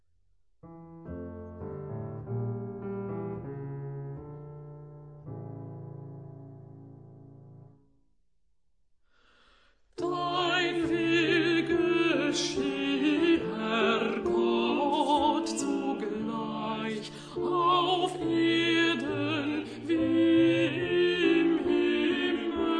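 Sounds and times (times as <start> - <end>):
alto voice singing: 10.0 - 22.7.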